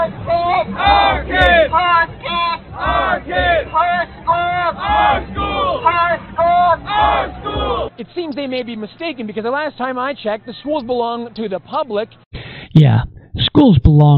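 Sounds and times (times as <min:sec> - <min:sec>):
protesters chanting slogans: 0:00.0 - 0:08.0
speech: 0:08.0 - 0:14.1.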